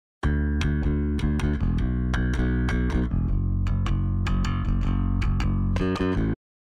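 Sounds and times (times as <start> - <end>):
bass: 0.2 - 6.6.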